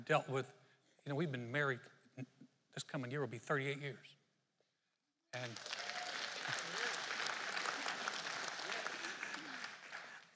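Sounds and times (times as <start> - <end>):
speech: 0.0 - 4.2, 5.3 - 5.8
crowd clapping: 5.4 - 10.3.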